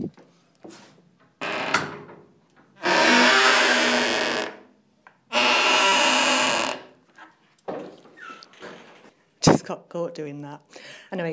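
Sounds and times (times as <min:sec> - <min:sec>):
very squeaky door: 0:01.4 - 0:02.0, 0:02.8 - 0:04.6, 0:05.3 - 0:06.9, 0:08.2 - 0:08.9
speech: 0:09.7 - 0:11.3.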